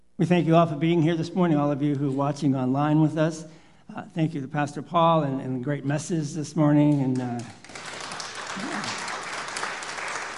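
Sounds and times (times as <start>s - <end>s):
speech: 0.2s - 7.6s
church congregation clapping at a morning service: 6.8s - 10.3s.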